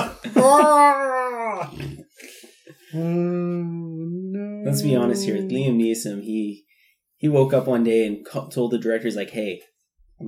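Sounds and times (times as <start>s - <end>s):
voice imitating reindeer noises: 0.4s - 2.0s, 2.9s - 6.0s
speech: 0.5s - 1.0s, 2.9s - 3.4s, 4.7s - 10.2s.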